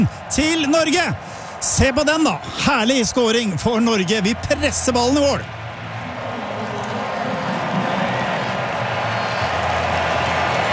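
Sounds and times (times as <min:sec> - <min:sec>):
speech: 0:00.0 - 0:05.6
stadium crowd cheering after a goal: 0:00.0 - 0:10.7
faint clapping: 0:06.8 - 0:10.7.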